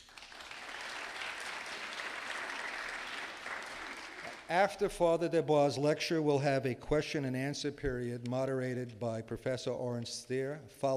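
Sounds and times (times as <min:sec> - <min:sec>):
audience applause: 0:00.0 - 0:04.5
speech: 0:04.5 - 0:10.9.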